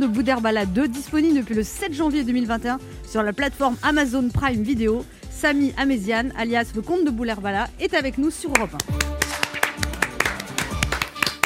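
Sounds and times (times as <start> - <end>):
speech: 0.0 - 9.1
audience clapping: 8.6 - 11.4.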